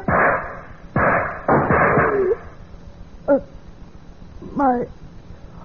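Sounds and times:
gunshots in a radio drama: 0:00.1 - 0:02.5
speech: 0:04.6 - 0:05.0.

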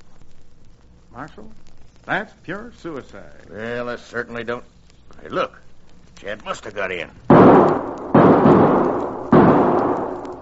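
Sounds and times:
speech: 0:01.2 - 0:05.6, 0:06.2 - 0:07.8
booming gunshots in a western radio drama: 0:07.3 - 0:10.4.

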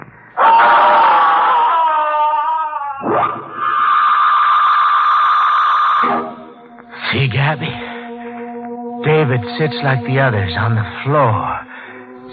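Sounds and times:
boy screaming: 0:00.4 - 0:06.5
speech: 0:07.5 - 0:07.9, 0:09.0 - 0:11.5.

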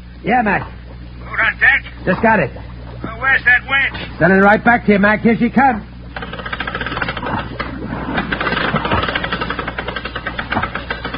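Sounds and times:
speech: 0:00.2 - 0:00.8, 0:01.4 - 0:05.9
hand-worked air pump pushing air down to a diver: 0:06.2 - 0:11.1.

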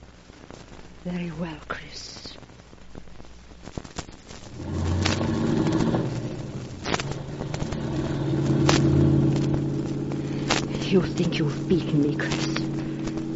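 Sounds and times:
sharp clicks and crackles: 0:00.0 - 0:01.0, 0:02.3 - 0:13.3
speech: 0:01.0 - 0:02.5, 0:10.9 - 0:12.5
car driving off: 0:04.5 - 0:13.3.

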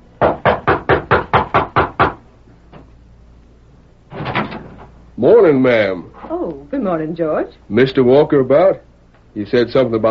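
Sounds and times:
knocking on a wooden back door of a ranch house: 0:00.2 - 0:02.2
speech: 0:05.2 - 0:06.1, 0:06.7 - 0:10.0.

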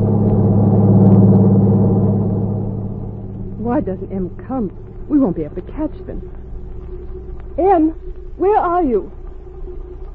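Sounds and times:
heavy truck engine passing at high speed: 0:00.0 - 0:07.6
speech: 0:03.8 - 0:06.5, 0:07.6 - 0:09.2.

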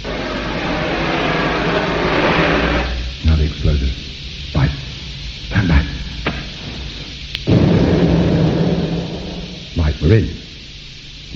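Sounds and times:
blowtorch: 0:00.0 - 0:03.4, 0:05.4 - 0:09.8
speech: 0:10.1 - 0:10.4.

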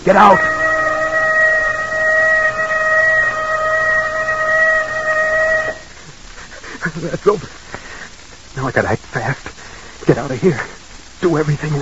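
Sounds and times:
speech: 0:00.0 - 0:00.6, 0:07.0 - 0:07.6, 0:08.6 - 0:11.7
warning whistle: 0:00.0 - 0:06.0.

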